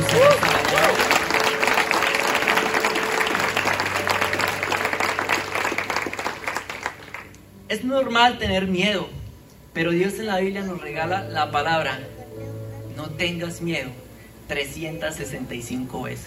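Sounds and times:
audience applause: 0:00.0 - 0:07.4
speech: 0:07.7 - 0:09.2, 0:09.8 - 0:12.2, 0:13.2 - 0:16.2.

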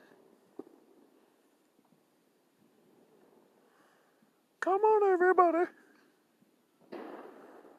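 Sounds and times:
firework rumbling crackle: 0:00.0 - 0:04.2, 0:06.8 - 0:07.7
speech: 0:04.6 - 0:05.8
loud firework bang: 0:06.8 - 0:07.7.

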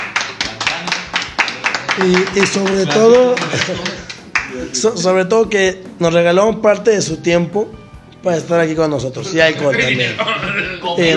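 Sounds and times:
hands clapping: 0:00.0 - 0:04.7
laughter: 0:02.0 - 0:04.2, 0:09.6 - 0:10.9
speech: 0:02.0 - 0:11.1.

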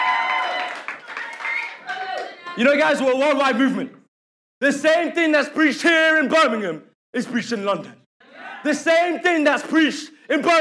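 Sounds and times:
crowd clapping: 0:00.0 - 0:03.3
speech: 0:02.6 - 0:04.0, 0:04.6 - 0:08.0, 0:08.6 - 0:10.5.

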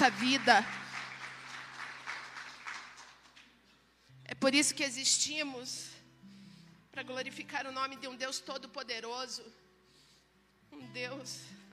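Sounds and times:
speech: 0:00.0 - 0:00.8, 0:04.4 - 0:05.9, 0:07.0 - 0:09.6, 0:10.7 - 0:11.6
audience applause: 0:00.0 - 0:03.5.

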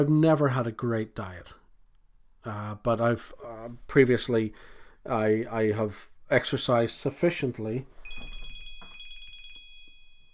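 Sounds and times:
speech: 0:00.0 - 0:01.6, 0:02.4 - 0:08.3
electronic phone ringtone: 0:08.1 - 0:10.3.

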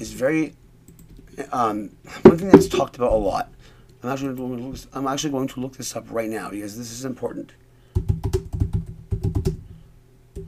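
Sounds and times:
speech: 0:00.0 - 0:00.6, 0:01.4 - 0:08.3
typing on a computer keyboard: 0:08.0 - 0:09.6.

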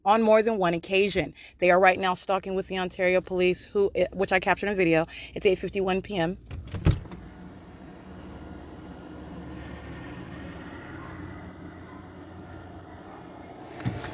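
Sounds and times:
speech: 0:00.1 - 0:06.9
helicopter circling overhead: 0:06.7 - 0:14.1.

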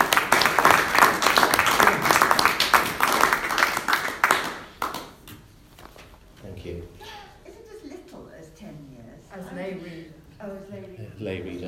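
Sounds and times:
round of applause: 0:00.0 - 0:05.2.

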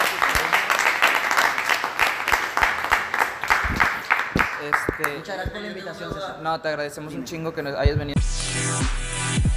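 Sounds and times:
audience applause: 0:00.0 - 0:05.2
speech: 0:04.6 - 0:09.4.

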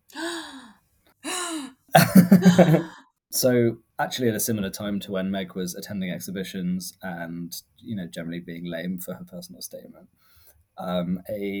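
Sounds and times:
big gasp: 0:00.1 - 0:00.7, 0:01.3 - 0:01.7, 0:10.2 - 0:10.6
laughter: 0:02.0 - 0:03.0
speech: 0:02.3 - 0:11.5.

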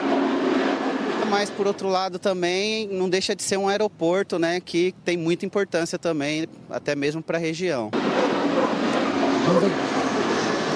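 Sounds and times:
airplane flying low near Guarulhos airport: 0:00.0 - 0:05.0, 0:07.9 - 0:10.7
speech: 0:01.3 - 0:08.8, 0:09.5 - 0:09.9.

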